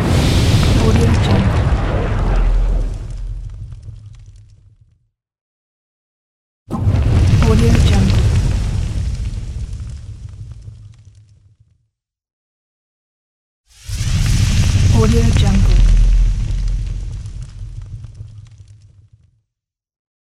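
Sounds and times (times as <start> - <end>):
fire whoosh: 0.0 - 4.4, 6.7 - 10.7, 13.7 - 18.7.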